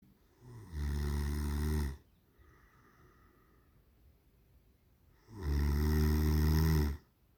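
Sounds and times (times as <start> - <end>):
person snoring: 0.4 - 2.0, 5.2 - 7.1.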